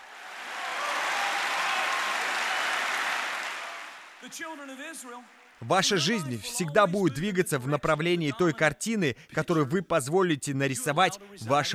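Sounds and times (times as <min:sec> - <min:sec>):
audience clapping hands: 0:00.0 - 0:06.0
speech: 0:04.2 - 0:11.7.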